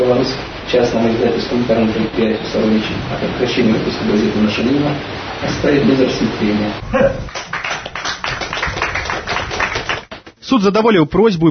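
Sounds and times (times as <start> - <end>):
speech: 0.1 - 7.5, 10.5 - 11.4
courtroom onlookers clapping at a court decision: 7.2 - 10.4.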